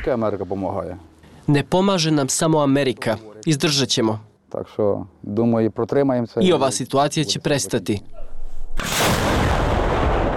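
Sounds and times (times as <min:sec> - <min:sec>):
speech: 0:00.0 - 0:09.1
American howitzer firing near Chasiv Yar: 0:08.8 - 0:10.3.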